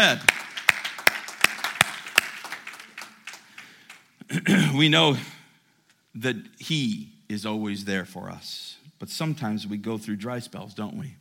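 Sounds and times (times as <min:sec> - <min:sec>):
speech: 0:00.0 - 0:00.3, 0:04.4 - 0:05.3, 0:06.2 - 0:11.2
audience clapping hands in a roomy space: 0:00.0 - 0:04.2.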